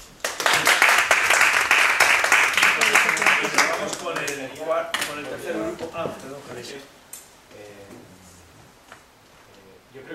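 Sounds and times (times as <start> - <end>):
group applause: 0.2 - 5.2
speech: 4.4 - 7.0, 10.0 - 10.1.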